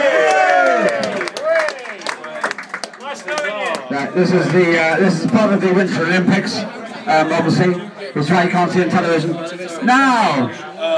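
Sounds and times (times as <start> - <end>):
audience cheering: 0.0 - 3.8
audience applause: 0.0 - 4.8
speech: 4.0 - 10.9.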